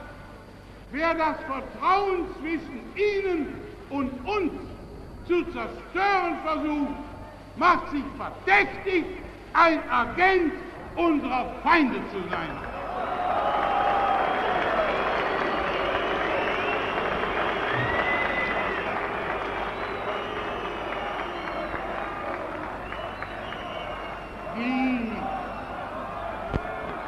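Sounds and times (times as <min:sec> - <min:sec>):
speech: 0:00.9 - 0:12.7
crowd shrill whistles: 0:12.4 - 0:26.5
large crowd roaring and shouting: 0:12.8 - 0:16.4, 0:17.0 - 0:27.0.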